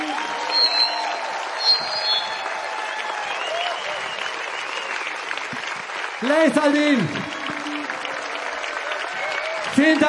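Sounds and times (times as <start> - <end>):
audience clapping at the close of an evening show in Nuremberg: 0.0 - 10.0
audience whistles: 0.2 - 2.6, 3.2 - 5.1
speech: 6.2 - 7.3, 9.8 - 10.0.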